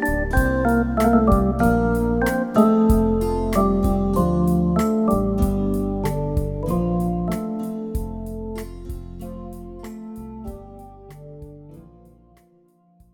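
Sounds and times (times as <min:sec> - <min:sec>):
organ playing examples: 0:00.0 - 0:11.7.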